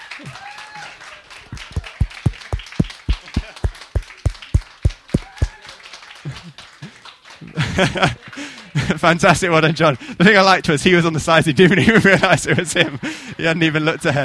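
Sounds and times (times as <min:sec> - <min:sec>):
audience clapping: 0:00.0 - 0:08.9
laughter: 0:07.5 - 0:09.0, 0:11.6 - 0:13.1
speech: 0:07.8 - 0:14.2.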